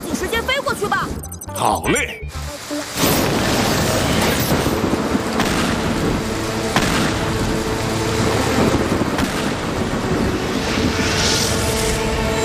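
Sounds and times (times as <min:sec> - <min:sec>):
speech: 0:00.2 - 0:02.8
video-game storm wind and rain roaring: 0:02.4 - 0:12.4
video-game thunder rumbling: 0:03.2 - 0:12.4.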